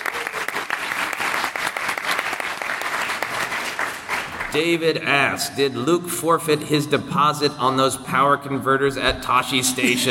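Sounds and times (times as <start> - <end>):
audience applause: 0.0 - 4.5
speech: 4.5 - 10.0.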